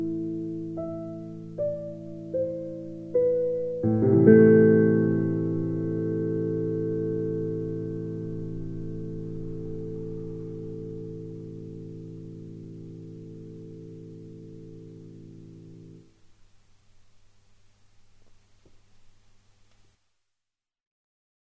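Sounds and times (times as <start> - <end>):
piano piece: 0.0 - 16.1.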